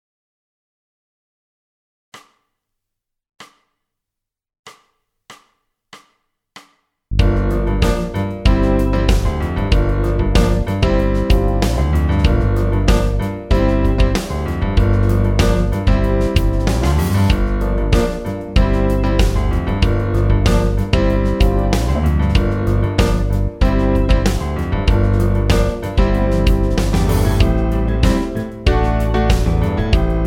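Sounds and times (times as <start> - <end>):
funk and soul song on piano: 7.1 - 30.2.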